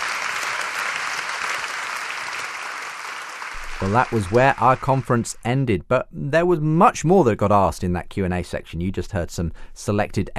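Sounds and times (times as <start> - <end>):
audience applause for panel: 0.0 - 5.4
speech: 3.8 - 10.3.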